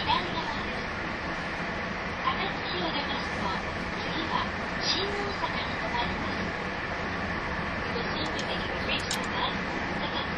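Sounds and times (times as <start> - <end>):
train running: 0.0 - 10.3.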